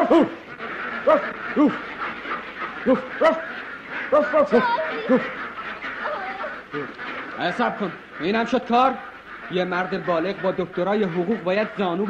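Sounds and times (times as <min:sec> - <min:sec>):
man imitating a dog barking: 0:00.0 - 0:00.4, 0:01.1 - 0:01.8, 0:02.9 - 0:03.5, 0:04.1 - 0:05.2
speech: 0:00.1 - 0:02.0, 0:02.8 - 0:05.4, 0:06.7 - 0:12.0.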